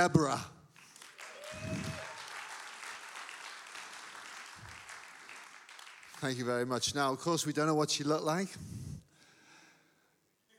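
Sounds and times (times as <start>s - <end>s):
speech: 0.0s - 0.5s, 6.2s - 8.8s
audience clapping: 0.0s - 6.9s.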